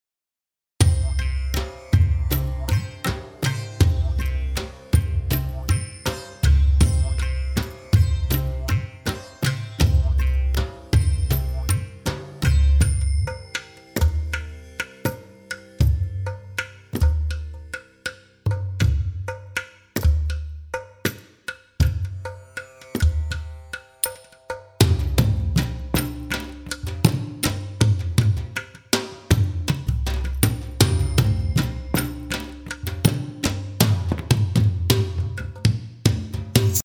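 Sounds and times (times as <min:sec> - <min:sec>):
Indian ensemble music: 0:00.8 - 0:36.8.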